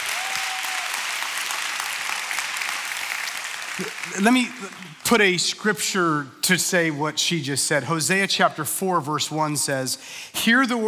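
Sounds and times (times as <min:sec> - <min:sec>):
audience clapping at a church service: 0:00.0 - 0:05.5
speech: 0:03.8 - 0:10.8.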